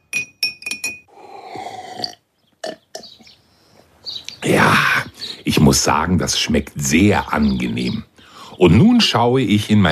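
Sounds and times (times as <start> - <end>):
spoon clinking against a glass: 0.0 - 1.1
speech: 5.7 - 9.9.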